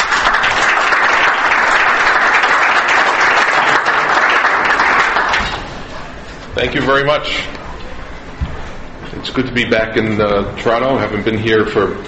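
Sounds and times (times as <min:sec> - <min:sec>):
audience applause welcoming a speaker at an industry show in Toronto: 0:00.0 - 0:06.0
speech: 0:06.6 - 0:07.6, 0:09.2 - 0:12.0.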